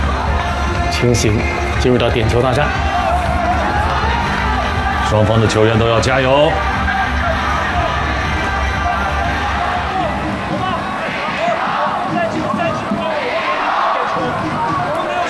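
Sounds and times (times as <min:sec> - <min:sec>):
football fans in a stadium shouting the home goalkeeper's name: 0:00.0 - 0:15.2
speech: 0:01.0 - 0:03.0, 0:05.1 - 0:06.7.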